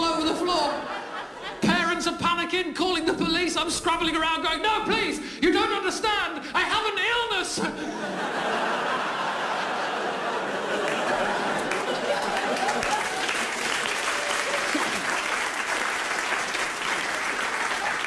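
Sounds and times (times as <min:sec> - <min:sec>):
laughter: 0:00.2 - 0:02.0, 0:07.6 - 0:18.0
speech: 0:02.5 - 0:09.1
audience clapping: 0:10.5 - 0:18.0.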